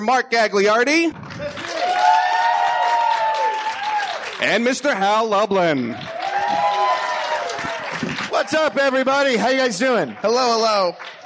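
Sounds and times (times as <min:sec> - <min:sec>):
speech: 0:00.0 - 0:01.6, 0:04.4 - 0:06.2, 0:08.5 - 0:11.2
live show audience scattered clapping: 0:01.1 - 0:11.2
audience member whooping at a live show: 0:01.5 - 0:04.2, 0:05.9 - 0:07.9.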